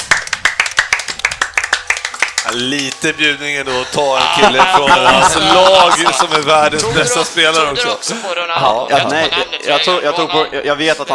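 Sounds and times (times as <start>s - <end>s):
applause: 0.0s - 3.1s
speech: 2.5s - 11.1s
laughter: 3.8s - 7.6s.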